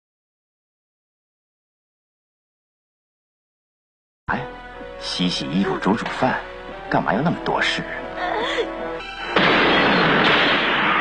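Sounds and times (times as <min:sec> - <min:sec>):
speech: 0:04.3 - 0:08.0
loud explosion: 0:09.2 - 0:10.9.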